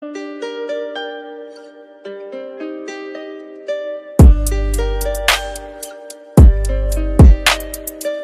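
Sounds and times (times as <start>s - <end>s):
boom bap trap rap beat: 4.2s - 8.2s.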